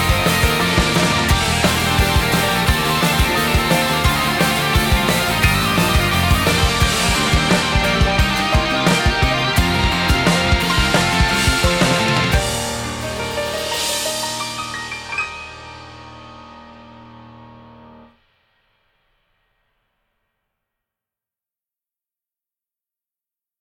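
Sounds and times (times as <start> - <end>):
short instrumental opening music: 0.0 - 18.0.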